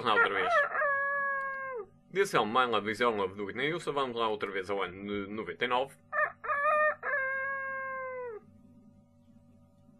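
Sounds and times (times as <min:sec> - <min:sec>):
speech: 0:00.0 - 0:00.8, 0:02.1 - 0:06.2
person imitating a rooster crowing: 0:00.0 - 0:01.9, 0:06.2 - 0:08.5.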